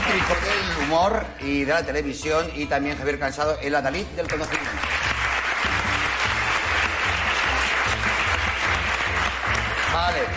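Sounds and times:
audience applause: 0.0 - 1.1, 4.3 - 10.3
speech: 0.3 - 5.0, 10.1 - 10.3.

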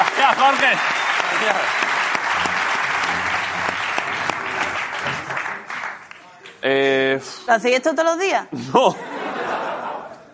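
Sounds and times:
audience applause: 0.0 - 6.4
speech: 0.3 - 2.5, 6.6 - 9.1
laughter: 8.7 - 10.3.

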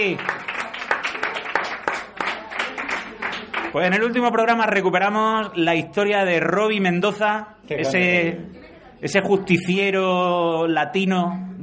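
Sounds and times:
speech: 0.0 - 0.5, 3.7 - 11.6
audience applause: 0.0 - 3.8.

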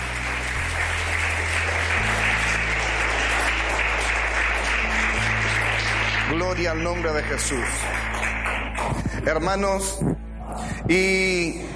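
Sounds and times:
audience applause: 0.0 - 9.1
speech: 6.6 - 11.7.

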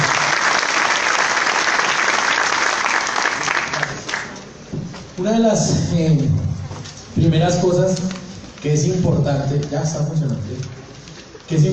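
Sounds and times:
audience applause: 0.0 - 4.4
speech: 5.2 - 6.5, 7.2 - 10.8, 11.5 - 11.7.

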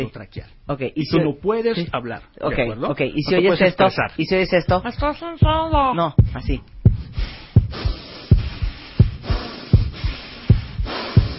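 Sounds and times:
speech: 0.0 - 7.9
person imitating rapid breathing: 7.0 - 11.3.

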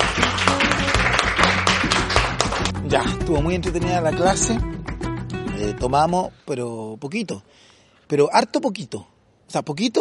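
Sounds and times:
applause: 0.0 - 2.9
speech: 2.9 - 4.8, 5.6 - 9.9.

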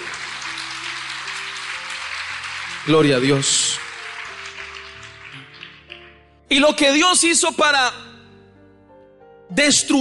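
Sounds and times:
audience applause: 0.0 - 6.1
speech: 2.8 - 3.9, 6.5 - 8.1, 9.6 - 9.9.

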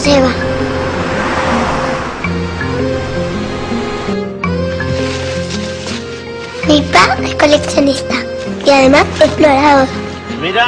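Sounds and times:
low tonal hums: 0.0 - 4.4
car engine rumble: 0.0 - 4.8
road noise: 0.0 - 10.6
speech: 7.5 - 10.6.

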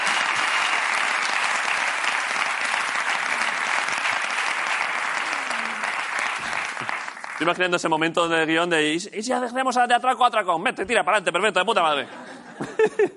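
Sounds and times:
sustained applause from a group: 0.0 - 8.4
speech: 7.4 - 12.2, 12.8 - 13.1
laughter: 12.0 - 13.1.

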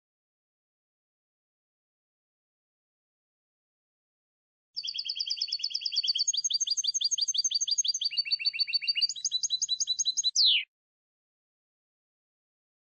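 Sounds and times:
European goldfinch chirping and twittering: 4.8 - 10.6.

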